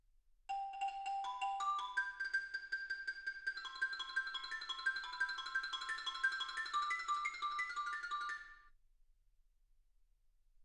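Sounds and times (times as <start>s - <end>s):
xylophone: 0.5s - 8.7s.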